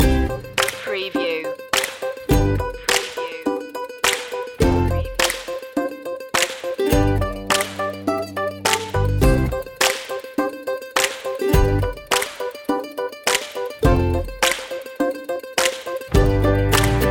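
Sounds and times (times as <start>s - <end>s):
happy music loop: 0.0s - 17.1s.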